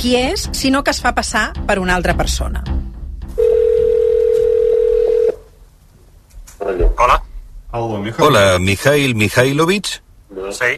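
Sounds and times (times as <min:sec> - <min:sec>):
speech: 0:00.0 - 0:02.8, 0:06.7 - 0:10.7
telephone dial tone: 0:03.4 - 0:05.4.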